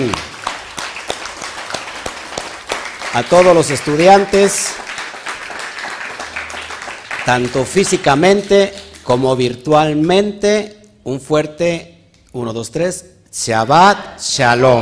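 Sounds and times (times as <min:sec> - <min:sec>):
speech: 0:00.0 - 0:00.3, 0:03.1 - 0:04.8, 0:07.2 - 0:14.8
audience applause: 0:00.0 - 0:09.0.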